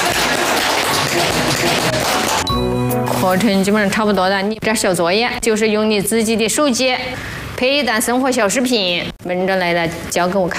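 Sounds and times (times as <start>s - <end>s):
applause, clapping hands: 0.0s - 2.5s
speech: 3.2s - 10.5s.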